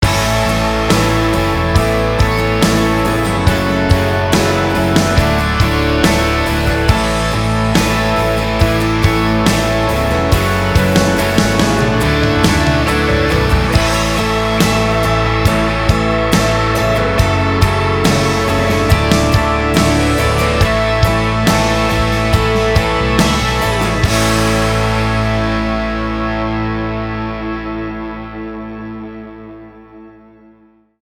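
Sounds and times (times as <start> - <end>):
instrumental music: 0.0 - 30.8.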